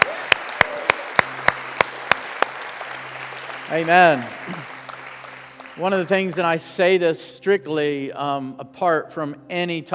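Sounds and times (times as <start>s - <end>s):
church congregation rhythmic hand clapping: 0.0s - 6.6s
speech: 3.7s - 4.7s, 5.8s - 9.9s.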